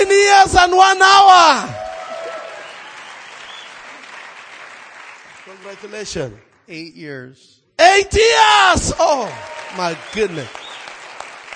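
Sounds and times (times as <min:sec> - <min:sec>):
speech: 0:00.1 - 0:01.9, 0:05.6 - 0:10.6
congregation applauding at a church anniversary celebration: 0:01.6 - 0:06.4, 0:09.0 - 0:11.5.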